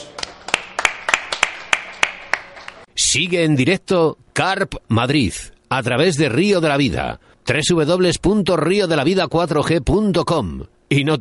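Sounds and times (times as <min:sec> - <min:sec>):
audience applause: 0:00.0 - 0:02.9
speech: 0:03.1 - 0:11.1.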